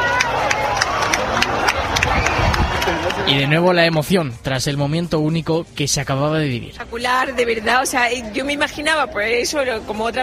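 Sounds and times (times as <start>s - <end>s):
crowd applause: 0.0s - 3.6s
speech: 3.3s - 10.2s.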